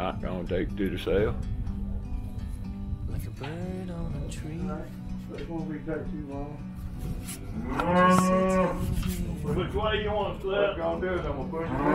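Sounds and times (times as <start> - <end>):
speech: 0.1 - 1.6, 3.2 - 11.9
herd of cattle mooing: 7.6 - 8.9, 11.6 - 11.9.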